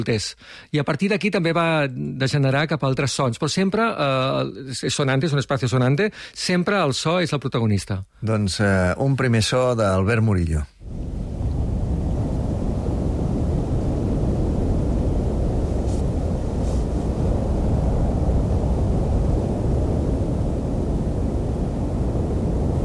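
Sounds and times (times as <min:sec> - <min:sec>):
speech: 0:00.0 - 0:11.0
waves on a sandy beach: 0:10.8 - 0:22.8.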